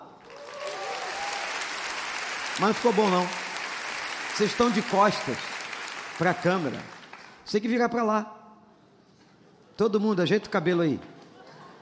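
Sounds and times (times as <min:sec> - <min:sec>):
audience applause: 0:00.0 - 0:07.4
speech: 0:02.6 - 0:03.4, 0:04.4 - 0:05.5, 0:06.2 - 0:08.4, 0:09.8 - 0:11.1.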